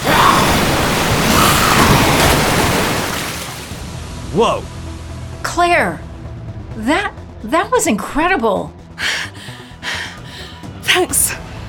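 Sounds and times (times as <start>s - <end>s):
rushing water flood from the bathroom: 0.0s - 4.1s
speech: 4.4s - 4.8s, 5.5s - 6.0s, 6.8s - 9.3s, 10.9s - 11.4s.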